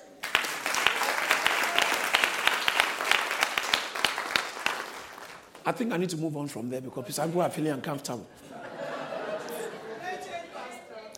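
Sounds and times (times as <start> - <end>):
audience applause: 0.0 - 5.6
speech: 5.7 - 8.6
laughter: 8.3 - 10.9.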